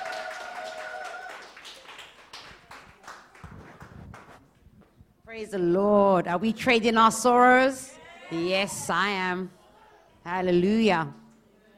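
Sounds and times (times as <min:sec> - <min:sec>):
audience clapping: 0:00.0 - 0:04.5
speech: 0:05.3 - 0:09.6, 0:10.3 - 0:11.2.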